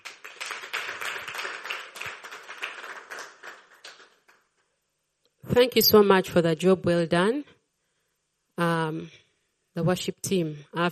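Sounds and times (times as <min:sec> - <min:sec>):
audience hand clapping: 0:00.0 - 0:04.7
speech: 0:05.6 - 0:07.6, 0:09.8 - 0:10.9.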